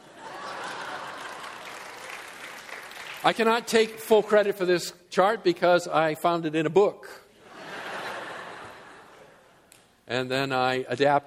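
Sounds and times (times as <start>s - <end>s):
laughter: 0.0s - 1.8s, 7.4s - 9.6s
audience applause: 0.0s - 4.3s
speech: 3.2s - 7.2s, 10.1s - 11.2s.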